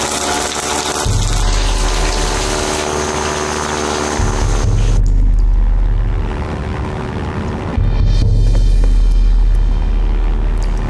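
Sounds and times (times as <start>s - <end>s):
heavy aircraft engine droning overhead: 0.0s - 10.8s.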